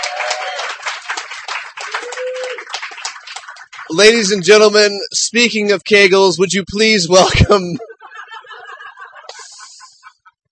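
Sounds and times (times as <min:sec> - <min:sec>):
audience applause at a live reading event: 0:00.0 - 0:04.4
speech: 0:03.9 - 0:07.9
laughter: 0:07.1 - 0:10.5.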